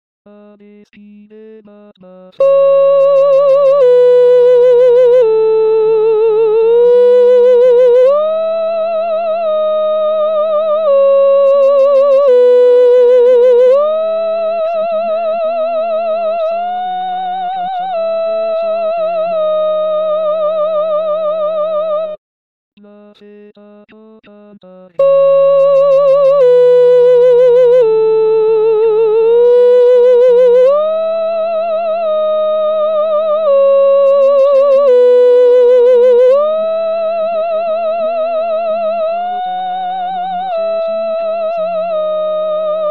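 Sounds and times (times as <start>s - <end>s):
soprano singing: 0.3s - 21.7s, 22.8s - 42.9s.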